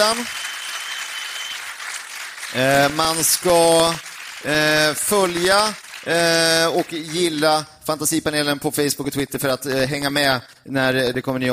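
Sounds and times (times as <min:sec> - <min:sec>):
speech: 0:00.0 - 0:00.5, 0:02.5 - 0:11.5
audience applause: 0:00.0 - 0:07.4.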